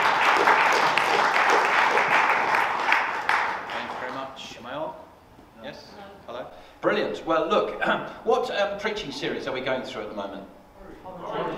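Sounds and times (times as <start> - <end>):
audience clapping to welcome a preacher: 0.0 - 4.5
speech: 7.2 - 10.6.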